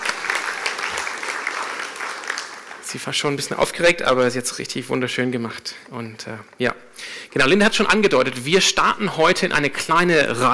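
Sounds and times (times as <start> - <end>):
audience applause: 0.0 - 3.6
speech: 2.9 - 10.5.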